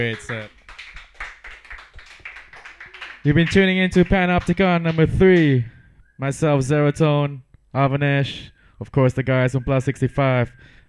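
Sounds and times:
speech: 0:00.0 - 0:00.6, 0:03.2 - 0:10.7
round of applause: 0:00.0 - 0:05.5.

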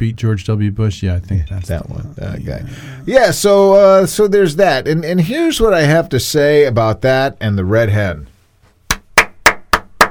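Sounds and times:
speech: 0:00.0 - 0:08.3
loud popping hand claps: 0:08.9 - 0:10.0.

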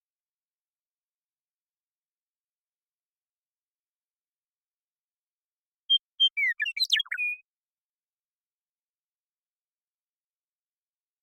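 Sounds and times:
western meadowlark singing: 0:05.9 - 0:07.4.

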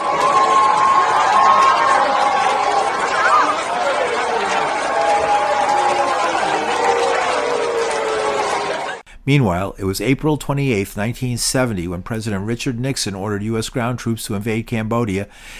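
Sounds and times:
crowd cheering: 0:00.0 - 0:09.1
speech: 0:09.3 - 0:15.5.

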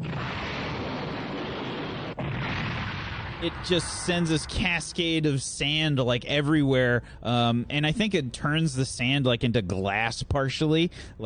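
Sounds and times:
Cyclone Pulse Rifle firing a big shot: 0:00.0 - 0:05.8
speech: 0:03.4 - 0:11.2.

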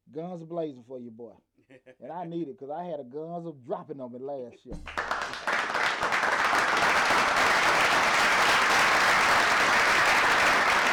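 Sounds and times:
speech: 0:00.2 - 0:05.4
clapping for a guest's success: 0:04.8 - 0:10.9.

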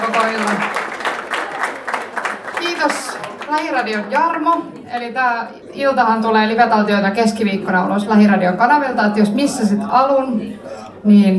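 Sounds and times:
audience applause: 0:00.0 - 0:05.0
speech: 0:02.8 - 0:11.3.

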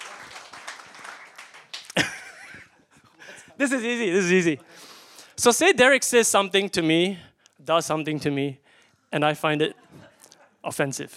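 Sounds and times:
audience applause: 0:00.0 - 0:02.3
laughter: 0:01.8 - 0:04.0, 0:09.7 - 0:10.6
speech: 0:03.6 - 0:09.8, 0:10.6 - 0:11.1.

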